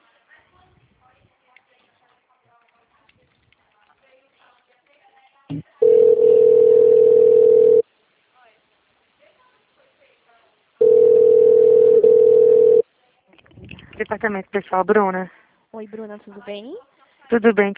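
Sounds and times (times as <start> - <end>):
telephone line tones while placing a new call: 5.8 - 7.8, 10.8 - 12.8
speech: 14.1 - 17.7.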